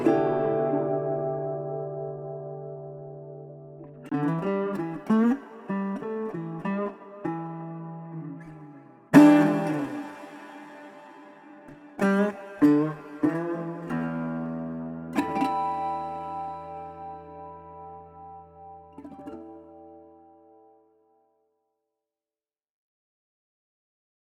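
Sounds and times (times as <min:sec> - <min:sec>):
atmospheric street blues guitar: 0:00.0 - 0:20.7.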